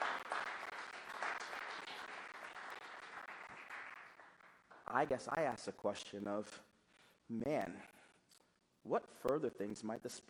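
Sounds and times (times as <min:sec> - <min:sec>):
audience clapping: 0:00.0 - 0:05.4
speech: 0:04.9 - 0:06.7, 0:07.3 - 0:07.9, 0:08.9 - 0:10.2.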